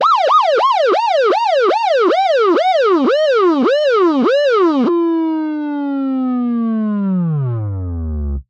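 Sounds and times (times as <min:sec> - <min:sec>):
police car siren: 0:00.0 - 0:08.4.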